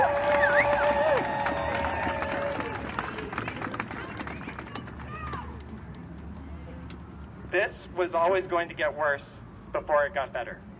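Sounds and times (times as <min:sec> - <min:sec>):
crowd applause: 0:00.0 - 0:05.3
speech: 0:08.0 - 0:10.7.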